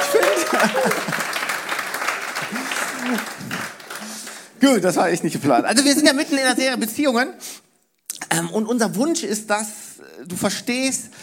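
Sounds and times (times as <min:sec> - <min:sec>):
laughter: 0:00.0 - 0:03.6
audience applause: 0:00.0 - 0:05.0
speech: 0:04.6 - 0:07.6, 0:08.4 - 0:11.2.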